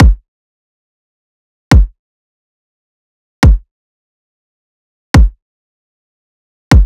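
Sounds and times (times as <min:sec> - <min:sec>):
riddim kick drum loop: 0:00.0 - 0:00.2, 0:01.7 - 0:02.0, 0:03.4 - 0:03.7, 0:05.2 - 0:05.4.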